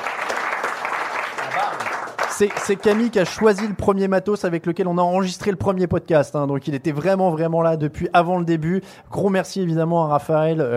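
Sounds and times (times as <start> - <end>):
audience applauding: 0.0 - 3.8
speech: 1.6 - 10.7.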